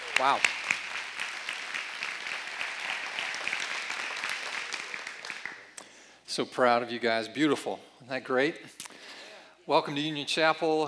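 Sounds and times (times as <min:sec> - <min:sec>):
audience applause for performers at a Union Chapel Advent service: 0:00.0 - 0:05.8
speech: 0:00.2 - 0:00.6, 0:06.4 - 0:08.9, 0:09.7 - 0:10.8.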